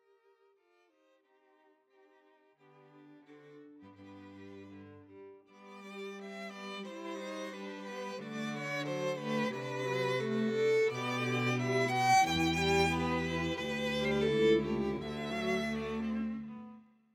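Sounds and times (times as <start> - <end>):
music piece: 5.8 - 16.9.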